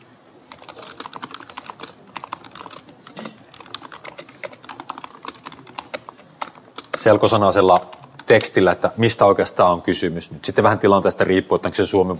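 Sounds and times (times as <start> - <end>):
typing on a computer keyboard: 0.5 - 8.6
speech: 7.0 - 12.1.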